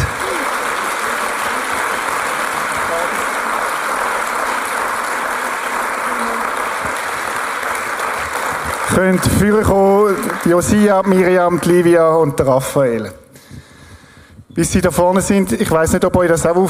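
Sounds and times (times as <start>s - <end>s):
audience applauding: 0.0s - 12.6s
speech: 9.0s - 13.2s, 14.6s - 16.6s.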